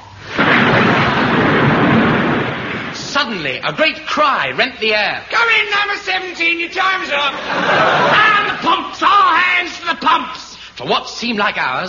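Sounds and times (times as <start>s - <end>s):
thunder as a storm bursts: 0.2s - 3.8s
speech: 3.3s - 11.8s
laughter: 7.2s - 8.7s.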